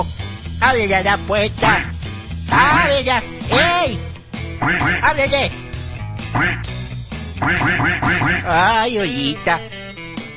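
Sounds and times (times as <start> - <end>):
speech: 0.0 - 1.9, 2.5 - 5.6, 6.3 - 6.8, 7.4 - 9.8
duck loose around a booth quacking: 2.5 - 2.9, 4.6 - 5.3, 6.2 - 6.7, 7.4 - 8.7.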